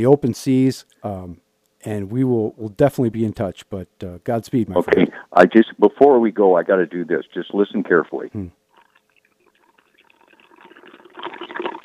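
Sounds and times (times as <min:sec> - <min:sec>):
speech: 0:00.0 - 0:08.6
ice cubes clinking in gin and tonic: 0:08.8 - 0:11.8.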